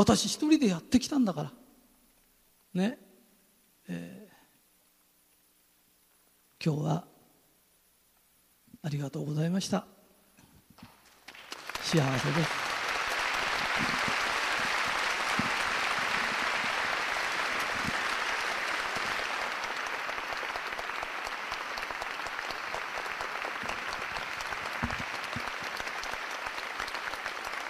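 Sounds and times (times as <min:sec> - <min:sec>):
speech: 0:00.0 - 0:01.6, 0:02.8 - 0:03.0, 0:03.9 - 0:04.2, 0:06.6 - 0:07.1, 0:08.8 - 0:09.9, 0:11.9 - 0:12.7
audience applause: 0:11.1 - 0:27.6.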